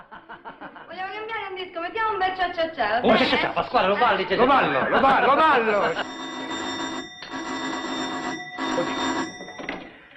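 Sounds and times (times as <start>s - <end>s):
laughter: 0.0s - 1.0s, 4.2s - 6.3s
speech: 1.6s - 6.2s
doorbell ringing: 5.9s - 10.1s.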